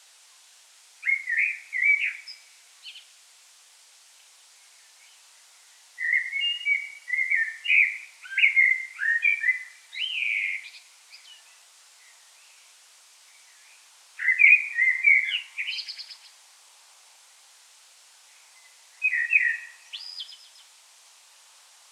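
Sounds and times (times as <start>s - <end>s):
common blackbird singing: 1.0s - 3.0s, 6.0s - 11.5s, 14.2s - 16.2s, 19.0s - 20.6s.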